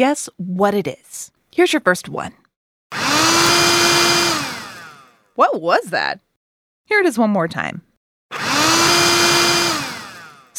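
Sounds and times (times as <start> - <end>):
speech: 0.0 - 2.4, 5.4 - 6.2, 6.9 - 8.4
robotic vacuum cleaner running: 2.9 - 5.2, 8.3 - 10.5.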